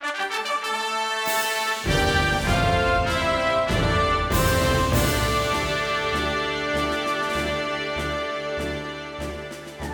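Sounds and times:
victory fanfare: 0.0s - 9.8s.

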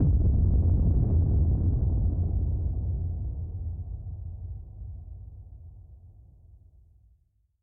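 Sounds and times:
boom: 0.0s - 4.9s.

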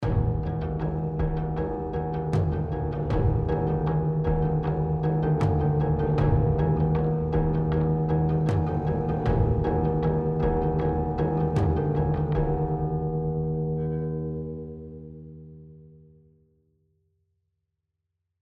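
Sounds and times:
rage combat music: 0.0s - 13.9s.

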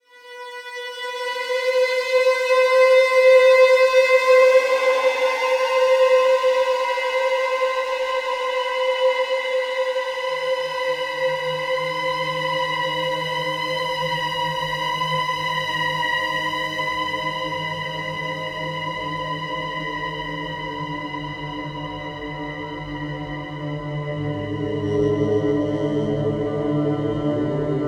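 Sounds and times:
ambient strings: 0.1s - 27.8s.

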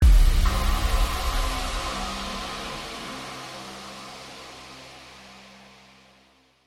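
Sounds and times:
wrecked music stinger: 0.0s - 6.4s.

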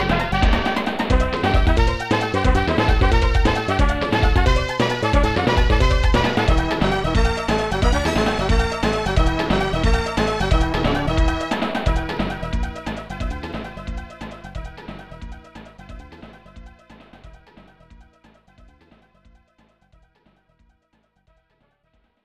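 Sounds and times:
game win jingle: 0.0s - 12.1s.

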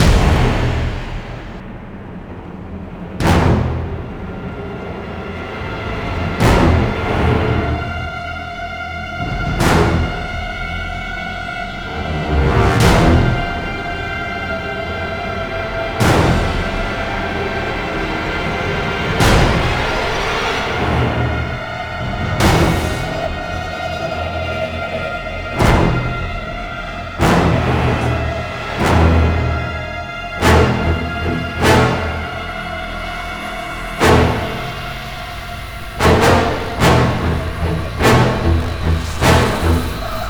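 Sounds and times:
suspense music: 0.0s - 40.2s.

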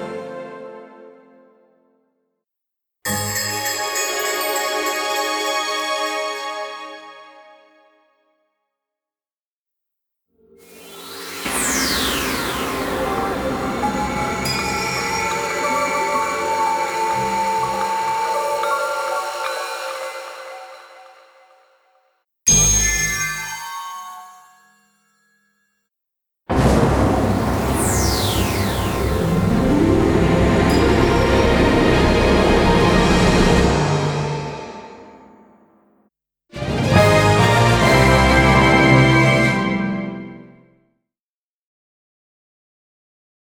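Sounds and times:
jingle: 3.1s - 7.8s, 10.8s - 21.4s, 22.5s - 25.8s, 27.3s - 35.3s, 36.6s - 40.5s.

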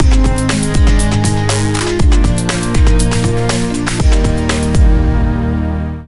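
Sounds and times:
dance music ending: 0.0s - 5.8s.

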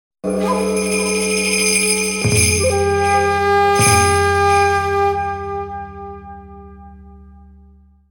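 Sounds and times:
death jingle: 0.2s - 4.9s.

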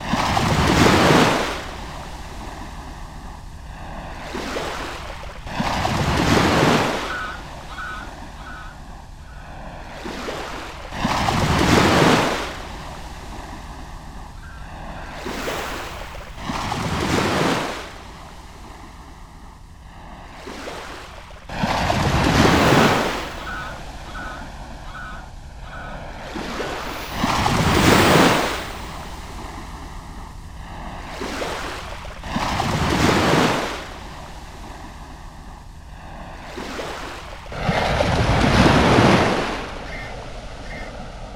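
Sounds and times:
ruins ambience: 0.0s - 41.3s.

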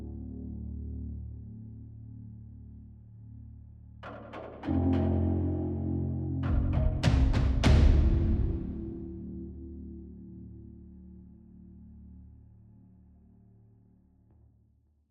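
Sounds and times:
tension music block: 4.6s - 9.4s.

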